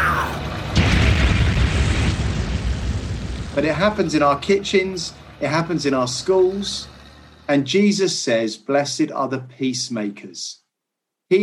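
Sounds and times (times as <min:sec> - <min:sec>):
tank cannon firing: 0:00.0 - 0:05.9
speech: 0:03.6 - 0:06.9, 0:07.5 - 0:10.6, 0:11.3 - 0:11.4.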